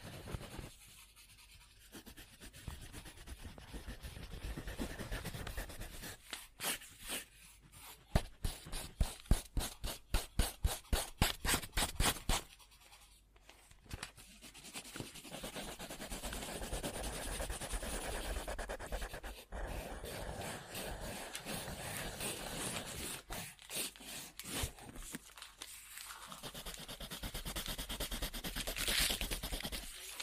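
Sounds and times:
pen or pencil scribbling on paper: 0.0s - 13.3s, 14.2s - 24.8s, 26.3s - 30.2s.

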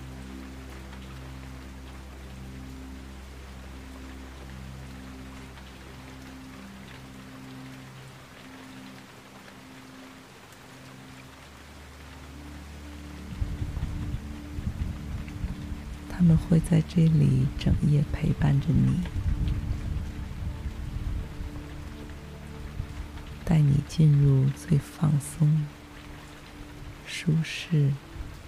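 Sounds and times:
rain pattering on tent fabric: 0.0s - 28.4s
low sustained rumble: 13.2s - 24.6s
speech: 16.2s - 19.2s, 23.5s - 25.8s, 27.2s - 28.1s.

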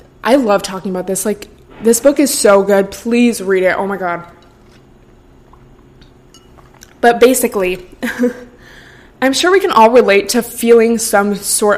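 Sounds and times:
speech: 0.2s - 4.4s, 7.0s - 8.5s, 9.2s - 11.7s
person sipping cold brew coffee: 4.4s - 7.0s.

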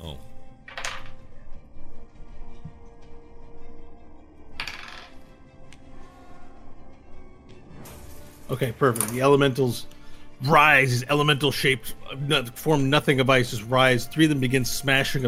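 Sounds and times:
dice rattling and clattering onto a hard surface: 0.7s - 1.2s, 4.6s - 5.2s
speech: 8.5s - 15.2s.

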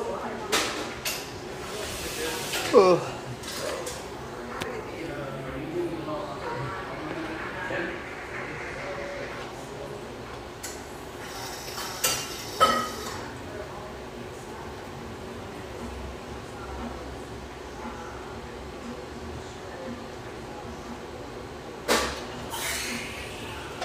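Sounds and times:
café murmur of voices: 0.0s - 23.8s
low rumble: 6.5s - 9.8s.

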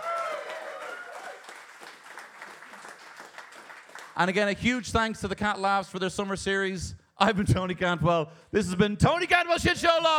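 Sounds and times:
live audience applause: 0.0s - 4.5s
speech: 4.2s - 10.1s.

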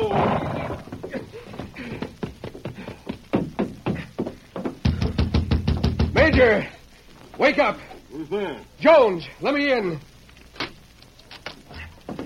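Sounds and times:
horse whinnying: 0.0s - 1.2s
hoofbeats of a horse ridden up to a fort stockade at dawn: 0.0s - 6.6s
speech: 6.4s - 6.7s, 7.4s - 10.1s.

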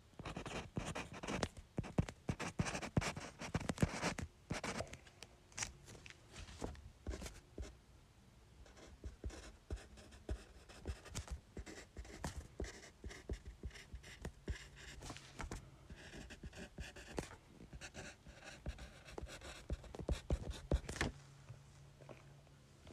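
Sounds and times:
faint low hum: 0.0s - 22.9s
pen or pencil writing letters on paper: 0.2s - 4.8s, 8.8s - 15.0s, 16.0s - 17.2s, 17.8s - 20.8s.

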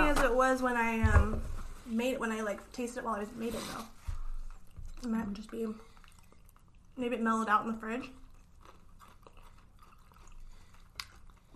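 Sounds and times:
speech: 0.4s - 4.0s, 5.0s - 5.9s, 7.0s - 8.2s
chewing food: 4.0s - 11.5s.

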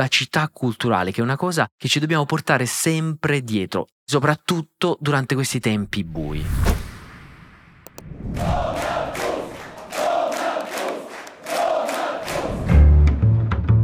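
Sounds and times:
speech: 0.0s - 6.8s, 8.2s - 8.8s
crowd chanting and cheering: 8.0s - 12.9s.

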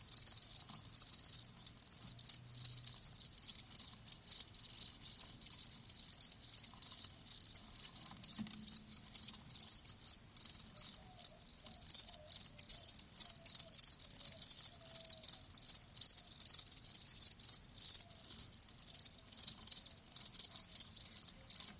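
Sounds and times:
crickets chirping: 0.0s - 21.7s.

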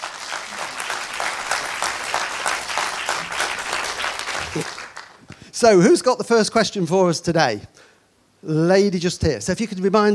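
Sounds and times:
audience applause welcoming a gardening question panel: 0.0s - 5.3s
speech: 4.5s - 4.8s, 5.6s - 7.8s, 8.4s - 10.1s.

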